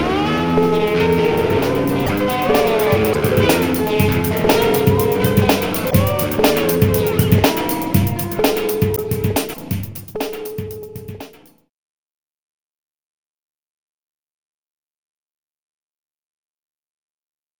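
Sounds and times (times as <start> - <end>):
samba music: 0.6 - 11.5.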